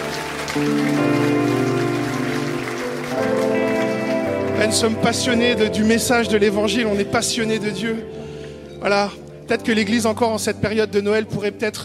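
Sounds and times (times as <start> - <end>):
audience applauding: 0.0 - 5.8
sustained musical tones: 0.0 - 10.8
speech: 0.5 - 1.4, 4.6 - 8.2, 8.8 - 11.8.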